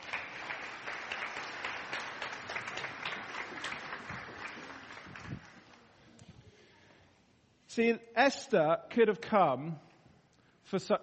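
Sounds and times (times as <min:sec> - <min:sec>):
applause: 0:00.0 - 0:05.9
speech: 0:07.8 - 0:09.9, 0:10.7 - 0:11.0.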